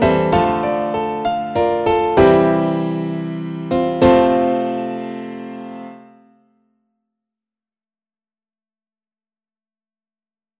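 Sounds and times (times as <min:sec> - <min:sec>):
piano: 0:00.0 - 0:06.6.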